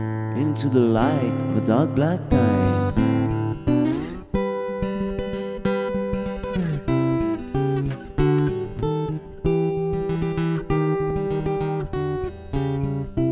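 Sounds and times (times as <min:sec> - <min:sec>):
person singing solo: 0:00.0 - 0:04.3
guitar: 0:00.0 - 0:13.3.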